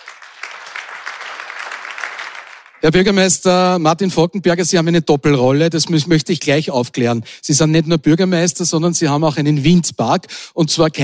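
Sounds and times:
audience applause welcoming a mayor at a public event: 0.0s - 2.8s
speech: 2.8s - 11.0s.

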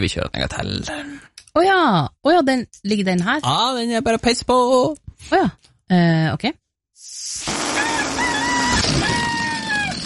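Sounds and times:
speech: 0.0s - 7.6s
rooster crowing: 7.7s - 10.0s.

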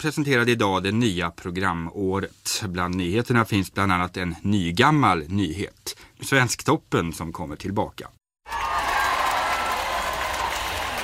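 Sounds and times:
speech: 0.0s - 8.2s
audience cheering and applause: 8.4s - 11.0s.

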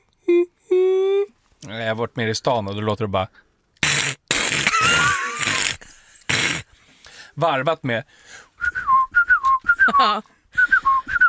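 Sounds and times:
speech: 1.7s - 3.5s, 7.4s - 8.4s, 9.9s - 10.3s
harsh voiced squawk: 3.8s - 6.6s
person whistling a great tit's song: 8.6s - 11.2s.

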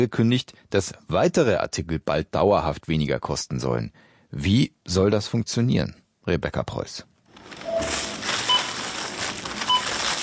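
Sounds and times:
speech: 0.0s - 7.6s
shop bustle: 7.3s - 10.2s
supermarket checkout register beeps: 7.6s - 8.8s, 9.6s - 10.2s.

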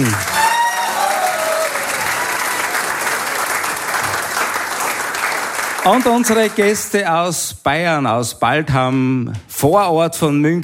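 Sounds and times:
audience applause: 0.0s - 7.0s
speech: 5.8s - 10.6s.

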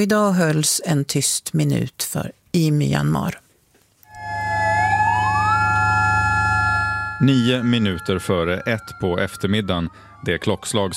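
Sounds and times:
speech: 0.0s - 3.4s, 7.2s - 10.9s
sirens in Mandalay marking a minute of silence: 4.1s - 10.9s.

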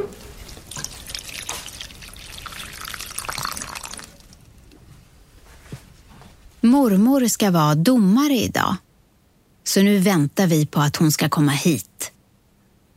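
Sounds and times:
water poured onto a banana plant in a greenhouse: 0.2s - 4.5s
speech: 6.6s - 8.9s, 9.7s - 12.1s.

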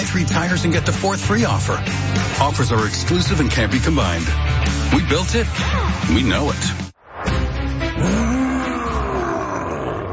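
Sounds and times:
speech: 0.2s - 6.8s
scary nightmare monster roar in an IKEA mattress ad: 8.0s - 10.1s.

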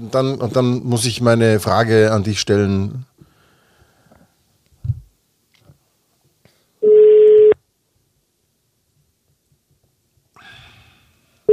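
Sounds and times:
speech: 0.0s - 3.1s
telephone ringing tone on a call: 6.8s - 7.6s.

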